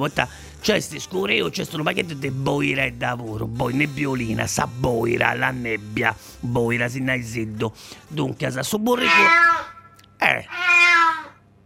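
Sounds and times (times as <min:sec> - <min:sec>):
speech: 0:00.0 - 0:10.8
cat meowing: 0:08.9 - 0:11.4.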